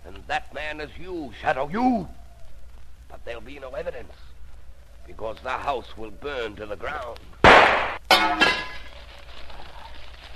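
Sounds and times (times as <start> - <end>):
speech: 0.7 - 2.2, 3.3 - 4.3, 5.1 - 8.5
lamp shattering: 7.5 - 8.9.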